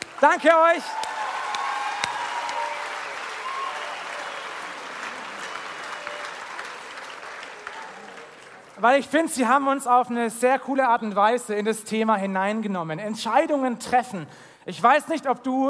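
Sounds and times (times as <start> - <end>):
audience applause: 0.0 - 9.1
speech: 0.2 - 1.0, 8.8 - 15.6.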